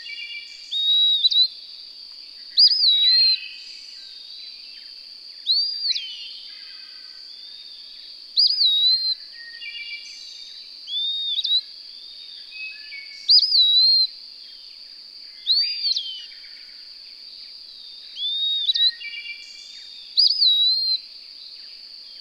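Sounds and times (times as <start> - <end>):
bird song of clear whistled phrases with warbled start and gliding tail: 0.0 - 1.5, 2.6 - 4.2, 5.4 - 6.4, 8.4 - 14.1, 15.4 - 16.5, 18.1 - 21.0.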